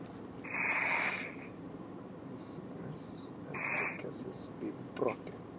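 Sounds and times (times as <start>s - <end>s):
person breathing deeply during a prayer session: 0.5s - 1.5s
speech: 4.2s - 5.3s.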